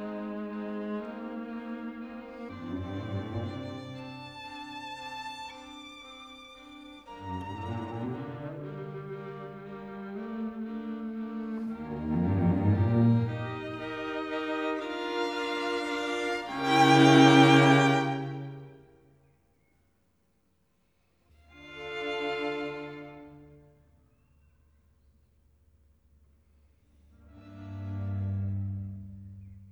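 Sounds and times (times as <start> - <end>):
string quartet adagio in F major: 0.0 - 18.9, 21.5 - 23.8, 27.2 - 29.7.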